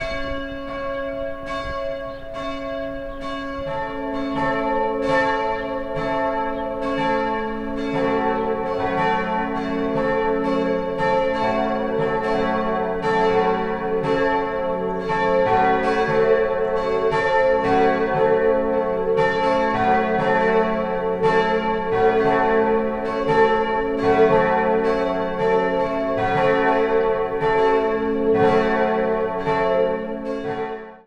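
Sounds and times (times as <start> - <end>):
church bells ringing: 0.0 - 31.0.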